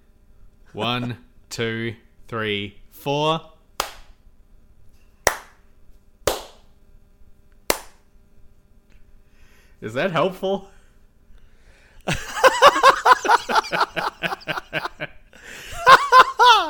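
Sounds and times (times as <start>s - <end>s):
speech: 0.7s - 3.5s, 9.8s - 10.8s
hand claps: 3.8s - 4.2s, 5.2s - 5.6s, 6.3s - 6.7s, 7.7s - 8.1s
laughter: 12.1s - 16.6s.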